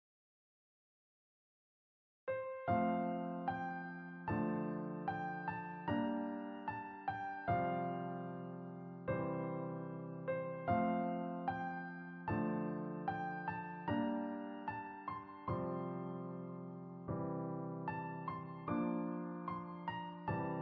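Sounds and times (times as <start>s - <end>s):
easy piano tutorial playing: 2.3s - 20.6s.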